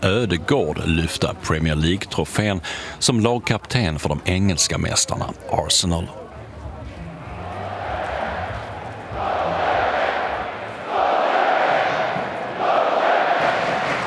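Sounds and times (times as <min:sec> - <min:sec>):
speech: 0:00.0 - 0:06.2
football supporters chanting in stadium: 0:07.3 - 0:14.0.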